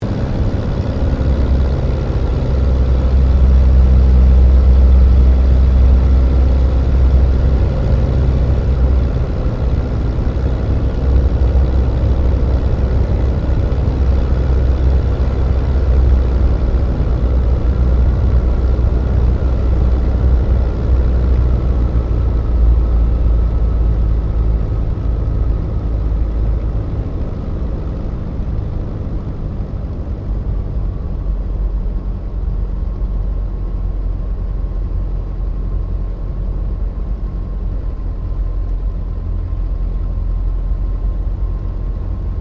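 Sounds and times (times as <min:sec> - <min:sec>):
de Havilland DH82A Tiger Moth touch and go heard from interior: 0:00.0 - 0:42.3.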